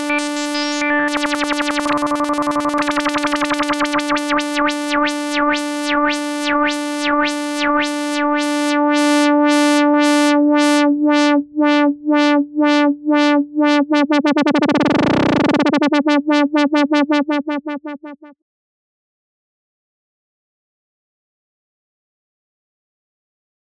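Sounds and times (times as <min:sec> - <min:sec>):
synthesizer oscillator through filter modulated by LFO: 0:00.0 - 0:18.3.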